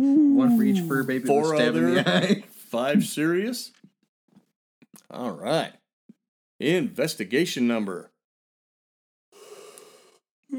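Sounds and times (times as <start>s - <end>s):
person yawning: 0.0s - 1.8s
speech: 0.4s - 3.8s, 5.1s - 5.8s, 6.6s - 8.1s
laughter: 0.5s - 3.5s.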